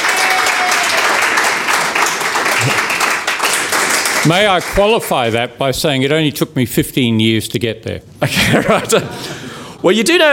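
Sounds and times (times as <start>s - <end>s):
audience applause: 0.0s - 5.1s
speech: 4.2s - 10.3s
laughter: 8.2s - 9.3s.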